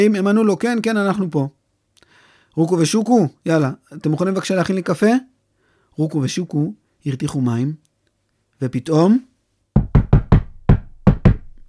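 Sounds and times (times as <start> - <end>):
speech: 0.0 - 1.6, 2.6 - 5.3, 6.0 - 7.8, 8.6 - 9.3
knocking on a door: 9.8 - 11.6.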